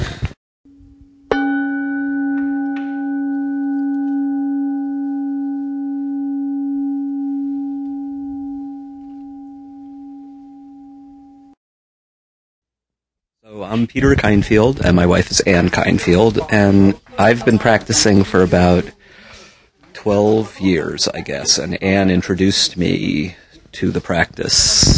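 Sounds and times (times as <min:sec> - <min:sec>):
singing bowl ringing: 0:00.7 - 0:11.6
speech: 0:13.8 - 0:19.0, 0:20.0 - 0:24.9.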